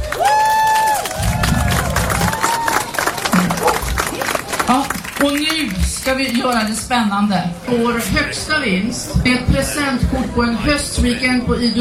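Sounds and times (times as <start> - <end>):
audience cheering: 0.0 - 4.6
audience applause: 0.0 - 6.7
speech: 4.7 - 11.7.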